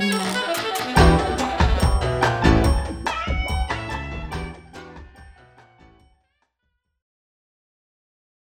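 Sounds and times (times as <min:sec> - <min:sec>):
bossa nova music: 0:00.0 - 0:06.0.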